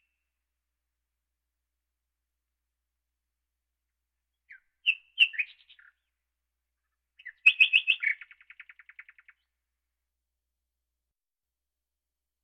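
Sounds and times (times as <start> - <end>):
birds: 4.4 - 6.2, 6.8 - 9.5.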